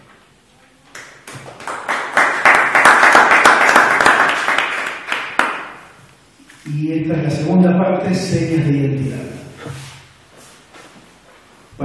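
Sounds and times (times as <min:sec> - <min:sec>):
light scattered applause from a small group: 0:01.2 - 0:05.8
speech: 0:06.8 - 0:09.8.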